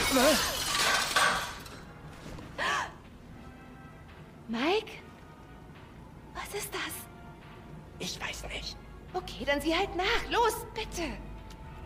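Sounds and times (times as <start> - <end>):
window being smashed: 0.0 - 1.8
music playing on a phone: 0.0 - 11.8
speech: 0.2 - 0.6, 9.4 - 11.3.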